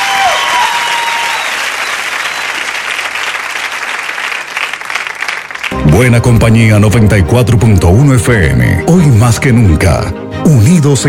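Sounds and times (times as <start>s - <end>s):
applause: 0.0s - 6.1s
speech: 6.0s - 11.0s.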